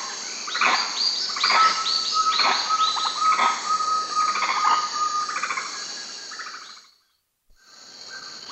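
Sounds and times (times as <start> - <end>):
equatorial saki monkey calling in South American rainforest: 0.6 - 5.7.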